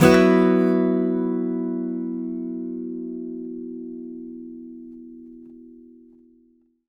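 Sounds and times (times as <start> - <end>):
acoustic guitar B sus chord downstrum: 0.0 - 6.5.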